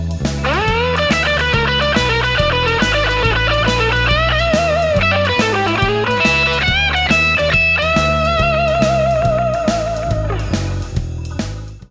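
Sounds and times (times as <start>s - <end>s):
guitar lick: 0.2s - 11.8s.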